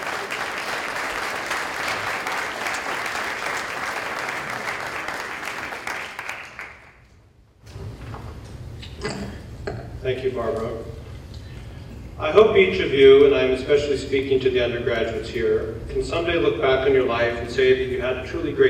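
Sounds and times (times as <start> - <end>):
audience applause: 0.0 - 7.0
speech: 10.1 - 10.9, 12.2 - 18.6.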